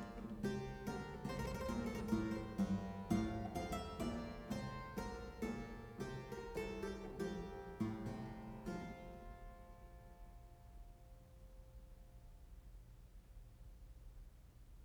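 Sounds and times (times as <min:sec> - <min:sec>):
polonaise in F major: 0:00.0 - 0:09.5.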